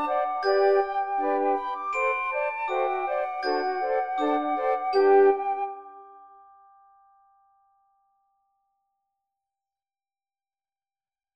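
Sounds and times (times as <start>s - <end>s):
solo flute: 0.0s - 6.3s
glockenspiel: 0.0s - 9.0s.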